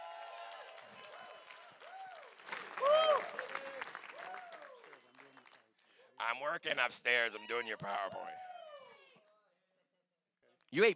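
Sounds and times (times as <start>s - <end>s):
whooping and cheering voices: 0.0s - 5.1s, 7.2s - 9.2s
audience hand clapping: 0.0s - 5.7s
speech: 6.4s - 8.5s, 10.7s - 10.9s.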